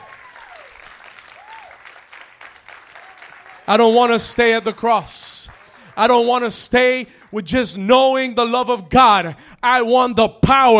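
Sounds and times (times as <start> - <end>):
audience hand clapping: 0.0 - 7.7
speech: 3.7 - 5.2, 6.0 - 10.7.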